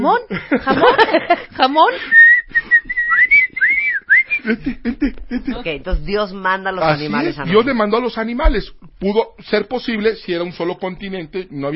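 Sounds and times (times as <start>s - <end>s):
speech: 0.0s - 2.6s, 4.4s - 11.7s
laughter: 0.3s - 1.9s, 2.9s - 5.9s
whistle being blown: 2.1s - 4.5s.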